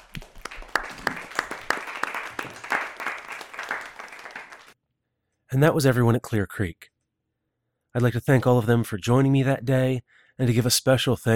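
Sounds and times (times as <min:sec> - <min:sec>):
audience applause: 0:00.0 - 0:04.8
speech: 0:05.5 - 0:06.9, 0:07.9 - 0:11.3.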